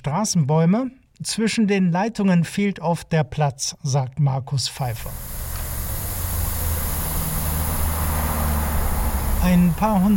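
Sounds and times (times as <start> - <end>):
speech: 0.0 - 5.3, 9.4 - 10.1
traffic rushing past on four-lane road: 4.9 - 10.1.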